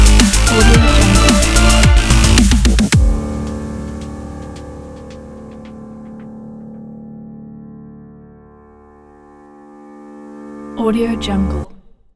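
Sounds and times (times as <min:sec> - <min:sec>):
action epic EDM: 0:00.0 - 0:04.7.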